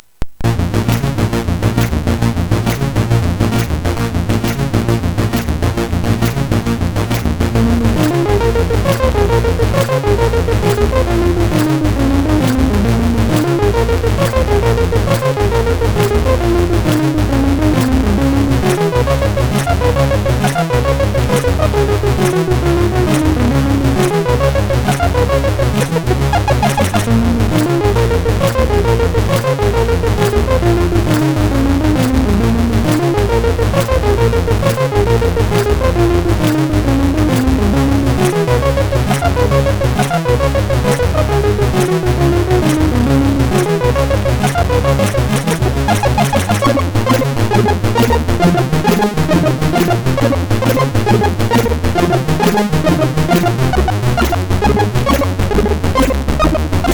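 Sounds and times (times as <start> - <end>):
SID chip MOS6581R4 music: 0.4 - 56.9.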